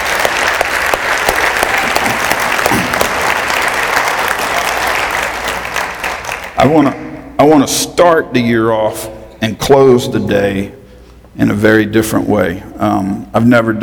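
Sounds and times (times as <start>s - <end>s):
audience hand clapping: 0.0s - 7.0s
speech: 6.6s - 10.8s, 11.4s - 13.8s.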